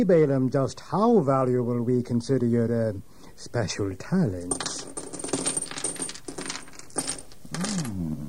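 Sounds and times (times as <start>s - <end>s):
speech: 0.0s - 4.9s
bag of jewels poured onto table: 4.4s - 8.0s.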